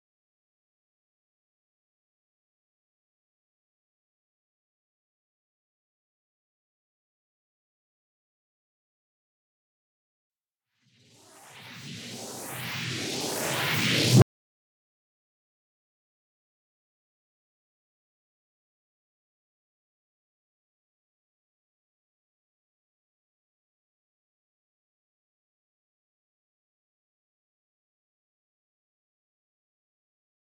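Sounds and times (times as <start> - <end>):
sound effect in B minor: 11.0 - 14.2.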